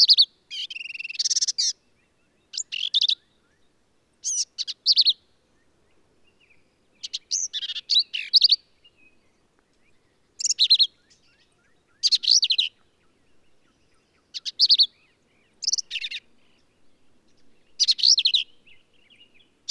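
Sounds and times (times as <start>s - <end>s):
black-capped vireo song: 0.0s - 19.7s.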